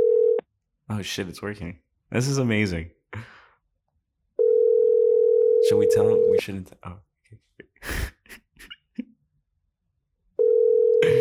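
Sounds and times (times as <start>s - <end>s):
phone call ringing tone, unanswered: 0.0s - 0.4s, 4.4s - 6.4s, 10.4s - 11.1s
speech: 0.9s - 3.3s, 5.7s - 8.0s
short breathy bursts: 7.8s - 8.6s.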